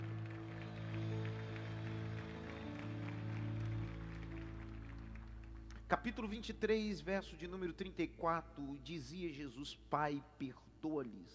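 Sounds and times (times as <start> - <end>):
audience clapping: 0.0 - 7.0
sustained low keyboard chords: 0.0 - 9.4
speech: 5.9 - 11.3.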